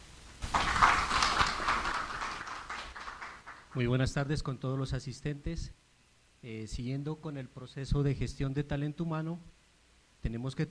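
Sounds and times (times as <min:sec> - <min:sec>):
audience applause: 0:00.4 - 0:03.8
speech: 0:03.8 - 0:05.8, 0:06.4 - 0:09.6, 0:10.2 - 0:10.7.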